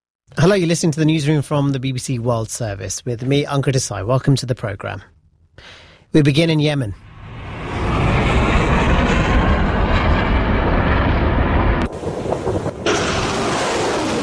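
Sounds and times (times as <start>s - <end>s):
speech: 0.4s - 7.1s
missiles being fired in the port city of Mocha, Yemen: 7.0s - 14.2s.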